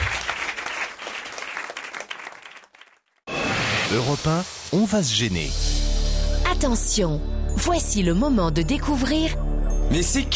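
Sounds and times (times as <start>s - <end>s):
audience applause: 0.0s - 3.1s
speech: 3.9s - 5.7s, 6.6s - 10.3s.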